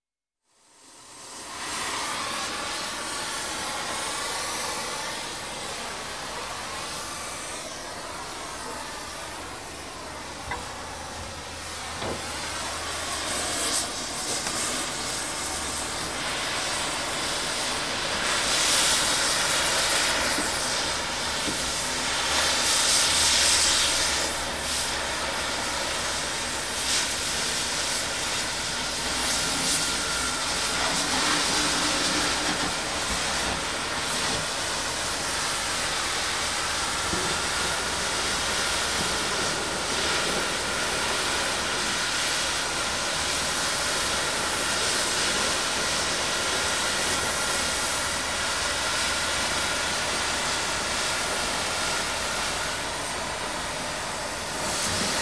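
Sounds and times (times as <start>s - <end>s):
gas welding torch: 0.6s - 55.2s.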